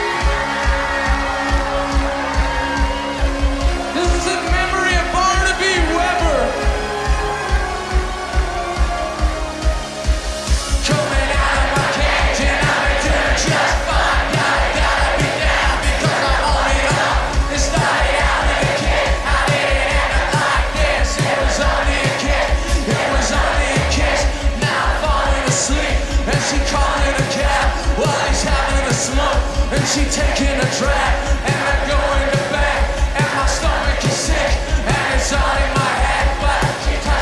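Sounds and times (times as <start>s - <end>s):
live rock music at Reading Festival: 0.0s - 37.1s
speech: 29.8s - 32.0s.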